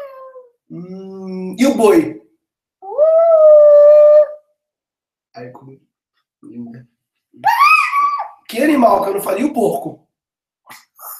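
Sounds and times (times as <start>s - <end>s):
speech: 1.6s - 2.2s, 5.4s - 7.6s, 8.5s - 10.0s
child imitating dog howl: 2.8s - 4.5s, 7.4s - 8.4s.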